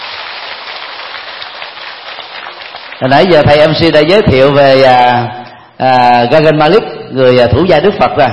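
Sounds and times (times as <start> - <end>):
audience applause: 0.0 - 3.3
speech: 3.0 - 8.3.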